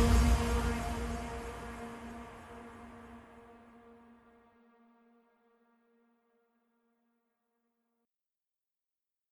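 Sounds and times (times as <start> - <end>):
drums with mega bass: 0.0 - 1.8.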